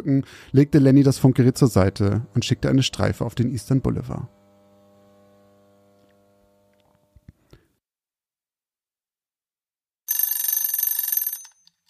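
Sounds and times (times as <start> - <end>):
speech: 0.0 - 4.4
small alarm clock bell ringing: 10.1 - 11.8.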